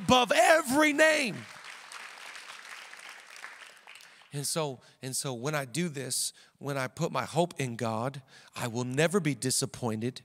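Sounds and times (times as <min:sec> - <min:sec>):
audience clapping: 0:00.0 - 0:04.5
speech: 0:00.1 - 0:01.6, 0:04.4 - 0:10.2.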